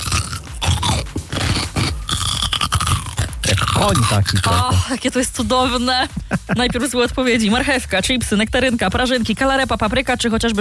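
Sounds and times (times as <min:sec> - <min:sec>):
biting and chewing a pickled cucumber: 0:00.0 - 0:04.9
speech: 0:03.8 - 0:10.5.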